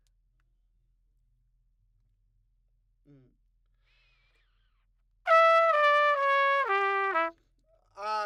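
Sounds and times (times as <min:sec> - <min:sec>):
trumpet: 0:05.3 - 0:07.4.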